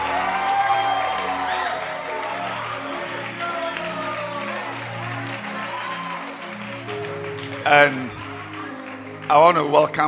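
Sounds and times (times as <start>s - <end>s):
audience clapping hands: 0.0s - 10.0s
speech: 7.6s - 8.3s, 9.3s - 10.0s.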